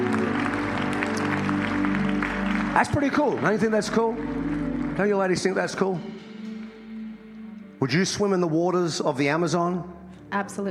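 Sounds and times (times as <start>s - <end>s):
church audience applause: 0.0s - 6.0s
speech: 2.8s - 6.2s, 7.8s - 10.6s.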